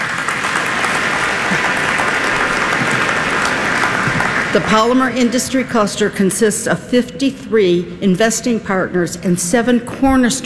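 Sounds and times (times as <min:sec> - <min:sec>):
audience applause: 0:00.0 - 0:04.7
speech: 0:04.5 - 0:10.4.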